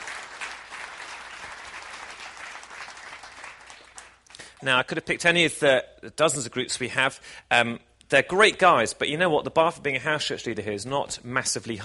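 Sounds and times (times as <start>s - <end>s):
round of applause: 0.0s - 4.6s
speech: 4.6s - 11.8s.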